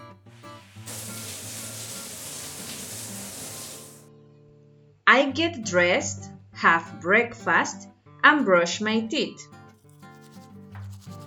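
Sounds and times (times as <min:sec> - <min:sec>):
shower water spraying: 0:00.3 - 0:04.1, 0:10.1 - 0:11.2
speech: 0:05.1 - 0:09.6.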